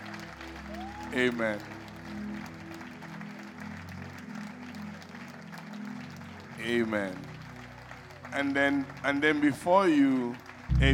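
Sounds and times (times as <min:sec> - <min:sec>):
church audience clapping: 0:00.0 - 0:10.9
speech: 0:01.1 - 0:02.2, 0:06.6 - 0:07.3, 0:08.3 - 0:10.9
low musical drone or organ tone: 0:10.7 - 0:10.9.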